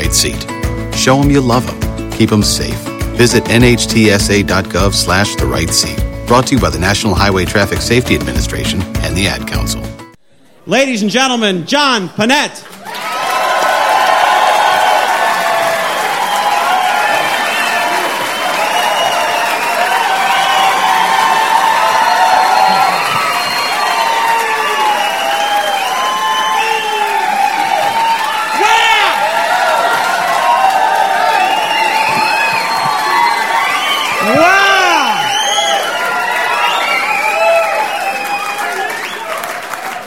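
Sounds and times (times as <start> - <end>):
speech: 0.1 - 9.9, 10.7 - 13.1
audience cheering: 12.7 - 40.0.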